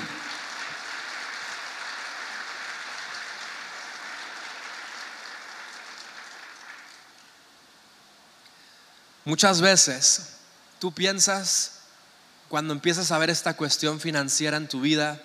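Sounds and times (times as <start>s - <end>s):
crowd applause: 0.0s - 7.2s
speech: 9.3s - 11.8s, 12.5s - 15.2s.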